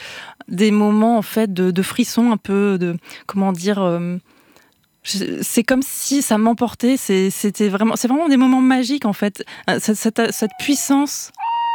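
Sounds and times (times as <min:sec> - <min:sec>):
speech: 0:00.5 - 0:04.4, 0:05.0 - 0:11.6
tawny owl hooting at night: 0:10.2 - 0:11.7.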